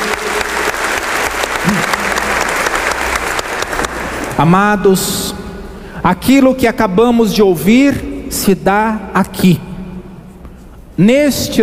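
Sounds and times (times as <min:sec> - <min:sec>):
applause: 0:00.0 - 0:04.5
speech: 0:04.4 - 0:05.3, 0:06.0 - 0:09.7, 0:11.0 - 0:11.6.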